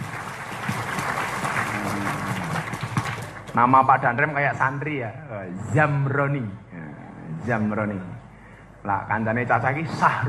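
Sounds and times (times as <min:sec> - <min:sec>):
audience applause: 0:00.0 - 0:03.6
speech: 0:03.6 - 0:06.6, 0:07.4 - 0:08.1, 0:08.8 - 0:10.2.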